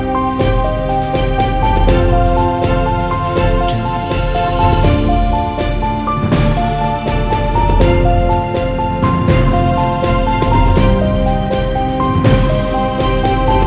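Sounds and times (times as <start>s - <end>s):
emotional cinematic music: 0.0s - 13.6s.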